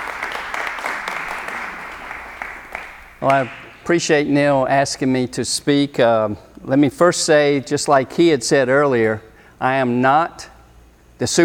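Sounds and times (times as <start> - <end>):
audience applause for a guest speaker: 0.0 - 3.2
speech: 3.2 - 10.5, 11.2 - 11.4.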